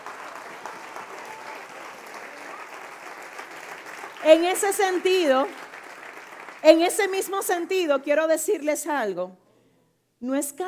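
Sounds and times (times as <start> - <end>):
audience applause: 0.0 - 7.7
speech: 4.2 - 5.6, 6.6 - 9.4, 10.2 - 10.6.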